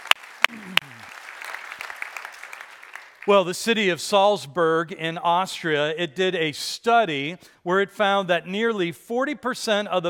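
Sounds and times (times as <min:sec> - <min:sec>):
church congregation clapping: 0:00.0 - 0:03.9
speech: 0:03.2 - 0:10.0.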